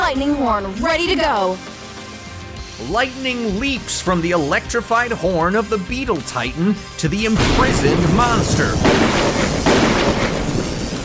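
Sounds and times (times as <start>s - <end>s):
speech: 0.1s - 1.8s, 2.8s - 9.7s
massive squid explosion: 7.4s - 11.0s.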